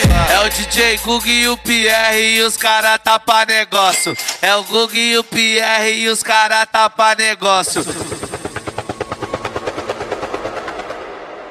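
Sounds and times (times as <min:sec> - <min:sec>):
speech: 0:00.4 - 0:08.2
helicopter rotor chopping: 0:07.5 - 0:11.4.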